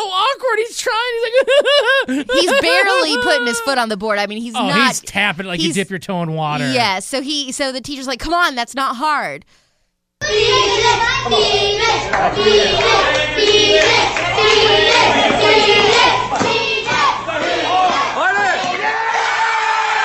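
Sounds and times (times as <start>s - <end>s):
speech: 0.0s - 9.6s, 10.2s - 16.7s
laughter: 1.2s - 4.0s, 4.6s - 6.9s, 12.0s - 16.3s
crowd of children cheering and shouting: 2.3s - 3.8s, 10.2s - 20.0s
clapping: 12.0s - 17.1s.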